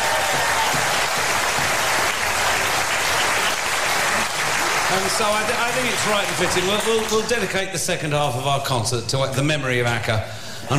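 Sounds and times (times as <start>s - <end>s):
audience applause: 0.0s - 7.5s
speech: 4.9s - 10.7s.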